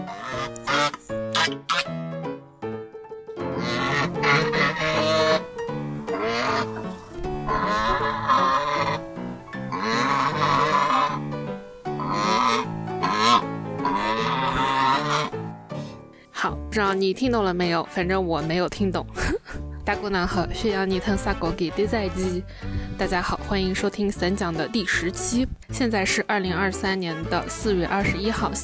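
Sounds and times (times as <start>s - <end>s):
goose honking: 0.0s - 2.0s, 3.5s - 11.3s, 11.9s - 15.5s, 21.0s - 22.4s
speech: 1.5s - 2.1s, 16.8s - 19.2s, 19.9s - 28.6s.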